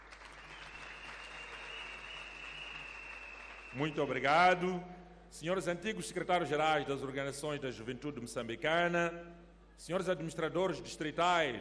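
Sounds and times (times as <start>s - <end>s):
audience applause: 0.0s - 4.0s
speech: 3.7s - 11.5s.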